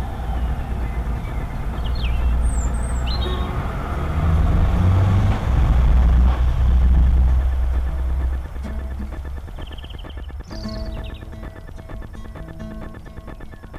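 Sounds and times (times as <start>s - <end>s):
birds: 0.0s - 4.0s, 7.3s - 13.7s
guitar: 0.0s - 13.7s.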